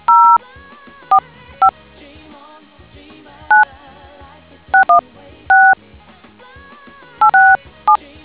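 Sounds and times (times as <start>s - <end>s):
DTMF tones: 0.0s - 0.4s, 4.8s - 5.8s, 7.2s - 7.6s.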